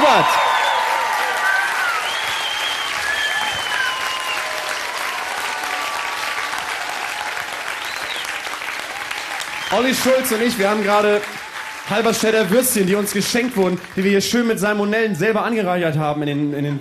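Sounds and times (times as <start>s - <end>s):
crowd of 200,000 applauding and cheering in the Park am Gleisdreieck: 0.0s - 15.2s
speech: 0.2s - 0.4s, 9.7s - 16.7s
shrill whistles from a crowd: 0.4s - 6.2s, 7.7s - 10.1s.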